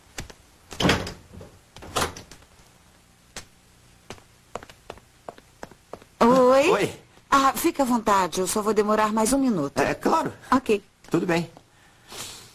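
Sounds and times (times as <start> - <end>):
footsteps coming in: 0.0 - 6.5
door opening: 0.7 - 2.4
speech: 6.6 - 12.3.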